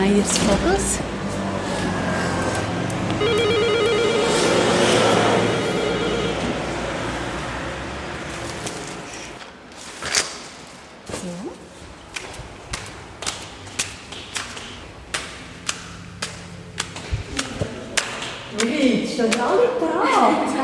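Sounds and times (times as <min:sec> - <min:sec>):
traffic rumble: 0:00.0 - 0:20.6
speech: 0:00.1 - 0:01.2
electronic doorbell ringing: 0:03.1 - 0:07.0.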